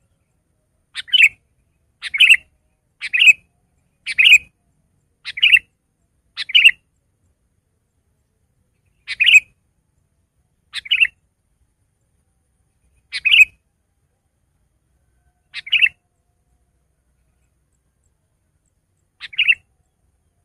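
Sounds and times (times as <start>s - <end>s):
Sooty-headed bulbul song of short bubbly phrases: 0.0s - 7.1s, 8.8s - 11.2s, 12.8s - 13.6s, 15.4s - 16.3s, 17.1s - 20.4s.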